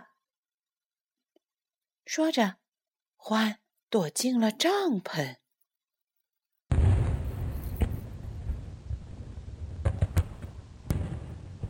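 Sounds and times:
speech: 2.1s - 2.6s, 3.2s - 5.4s
fireworks bursting in a tent: 6.7s - 11.6s.

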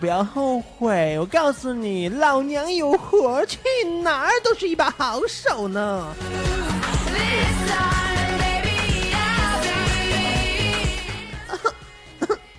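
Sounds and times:
speech: 0.0s - 6.6s
music: 0.0s - 12.5s
person coughing from something stuck in the throat: 11.5s - 12.5s.

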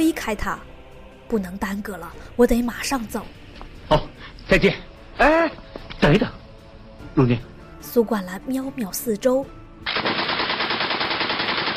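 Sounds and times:
speech: 0.0s - 0.7s, 1.3s - 6.4s, 7.2s - 10.2s
gunfire: 9.9s - 11.7s.

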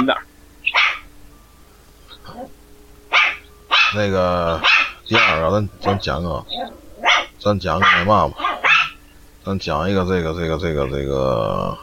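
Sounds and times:
speech: 0.0s - 0.8s, 3.9s - 6.8s, 7.4s - 8.5s, 9.5s - 11.8s
dog barking: 0.7s - 1.1s, 3.1s - 4.0s, 4.6s - 9.0s.

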